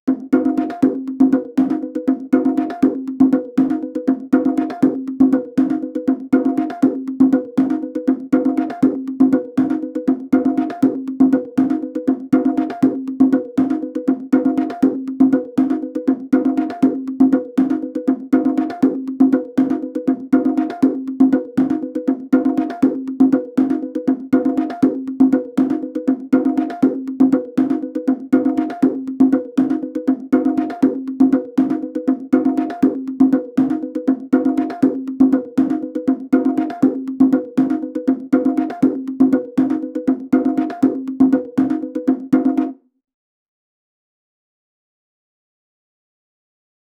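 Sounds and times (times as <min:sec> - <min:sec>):
hectic stressful game drums: 0:00.1 - 0:42.7.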